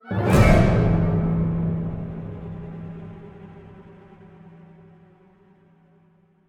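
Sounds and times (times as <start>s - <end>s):
musical stinger: 0.0s - 4.3s.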